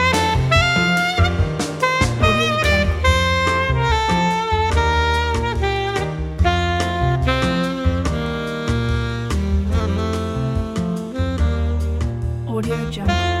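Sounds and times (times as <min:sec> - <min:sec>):
warm bossa nova saxophone: 0:00.0 - 0:13.3.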